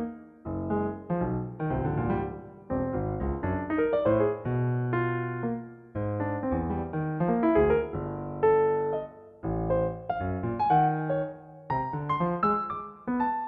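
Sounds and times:
Pianoteq 5 piano: 0.0 - 13.4.

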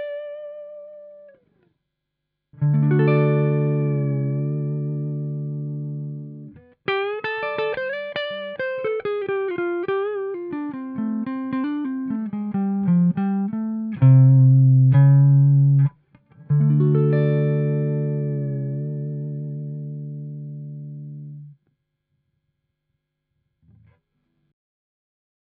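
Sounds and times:
dry guitar: 0.0 - 1.4, 2.6 - 21.6.

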